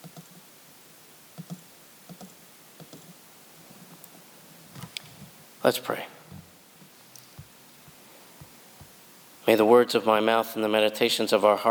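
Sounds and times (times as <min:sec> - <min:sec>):
computer mouse clicks: 0:00.0 - 0:00.4, 0:01.4 - 0:03.2
faint steady hiss: 0:00.0 - 0:11.6
speech: 0:05.6 - 0:06.2, 0:09.5 - 0:11.6.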